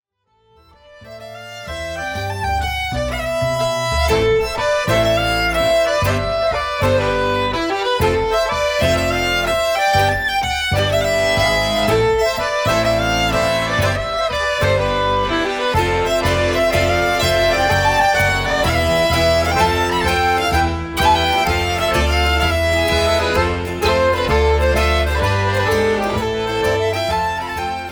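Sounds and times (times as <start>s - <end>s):
schottische dance music: 0.9s - 27.8s.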